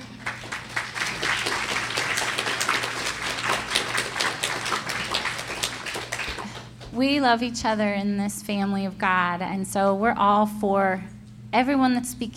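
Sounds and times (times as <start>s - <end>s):
audience clapping: 0.0s - 7.0s
speech: 7.0s - 12.3s.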